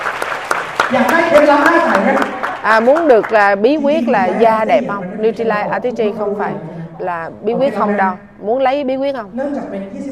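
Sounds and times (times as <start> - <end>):
audience clapping: 0.0 - 4.7
speech: 0.9 - 10.0.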